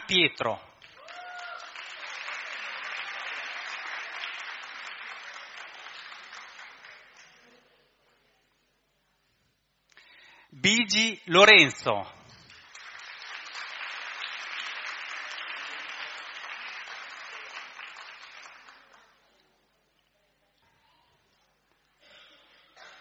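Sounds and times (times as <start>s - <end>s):
speech: 0.1s - 0.7s, 10.6s - 12.2s
audience applause: 0.8s - 7.4s, 12.5s - 19.2s.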